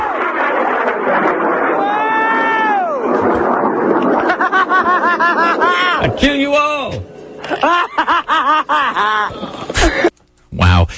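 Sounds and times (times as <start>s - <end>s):
bright harmonic whine: 0.0s - 8.9s
rocket launching roar: 0.0s - 8.9s
laughter: 4.3s - 6.1s, 7.4s - 10.1s
speech: 6.0s - 10.1s.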